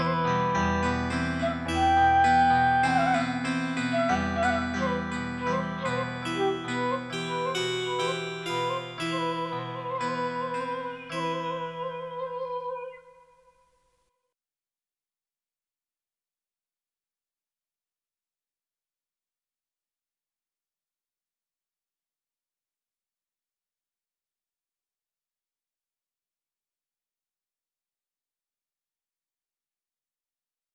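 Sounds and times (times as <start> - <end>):
kecapi zither: 0.0 - 13.2
suling bamboo flute: 0.0 - 13.6.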